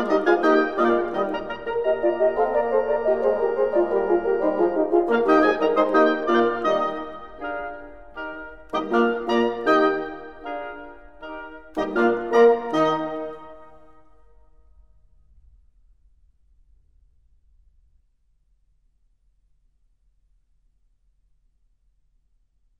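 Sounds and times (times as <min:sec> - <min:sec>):
fast classical divertimento in E flat: 0:00.0 - 0:14.2.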